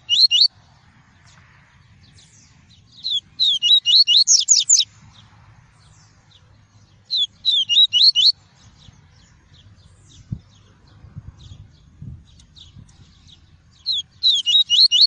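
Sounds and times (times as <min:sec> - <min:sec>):
double-collared seedeater singing high whistled phrases: 0:00.0 - 0:00.5, 0:03.0 - 0:04.8, 0:07.1 - 0:08.3, 0:13.9 - 0:15.0.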